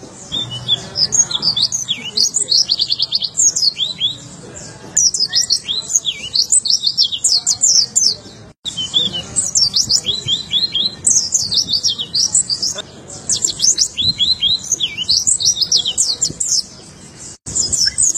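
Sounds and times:
white-eye song: 0:00.0 - 0:04.3, 0:05.0 - 0:18.1.

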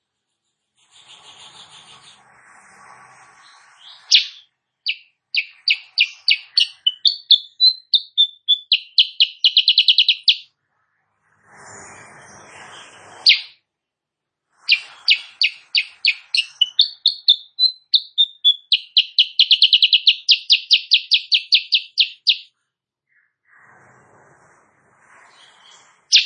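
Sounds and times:
sooty-headed bulbul song of sharp notes and rattle: 0:04.0 - 0:10.5, 0:13.3 - 0:13.6, 0:14.7 - 0:22.5.

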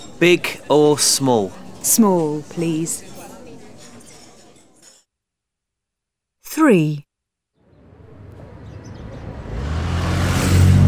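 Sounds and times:
speech: 0:00.2 - 0:03.1, 0:06.6 - 0:07.0
Aston Martin sports car engine revving: 0:08.8 - 0:10.8.

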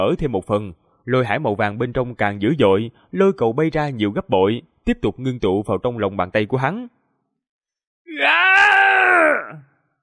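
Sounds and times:
speech: 0:00.0 - 0:07.0, 0:08.0 - 0:09.7
anguished scream of pain: 0:08.1 - 0:09.8.

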